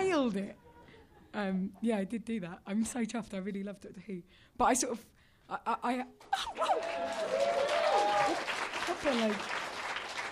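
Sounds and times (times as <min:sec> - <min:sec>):
speech: 0:00.2 - 0:00.7, 0:01.3 - 0:09.6
audience applause: 0:06.4 - 0:10.3.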